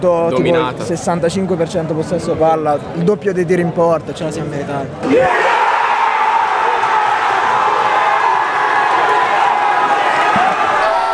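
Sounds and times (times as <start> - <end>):
speech: 0.0 - 5.6
crowd roaring after a penalty save: 5.0 - 11.1.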